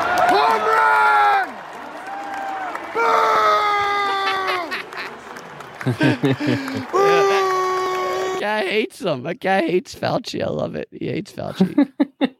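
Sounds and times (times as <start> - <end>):
baseball crowd booing: 0.0 - 8.7
laughter: 3.7 - 9.8, 11.4 - 12.3
speech: 5.8 - 7.0, 8.4 - 12.1.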